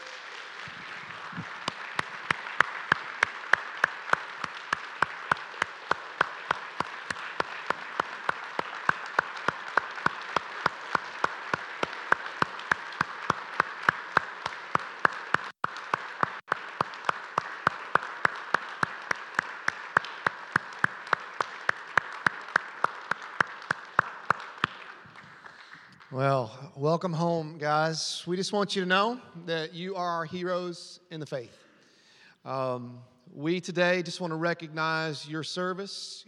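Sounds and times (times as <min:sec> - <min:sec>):
church congregation clapping to welcome returning missionaries: 0:00.0 - 0:26.5
speech: 0:26.2 - 0:31.6, 0:32.5 - 0:36.2.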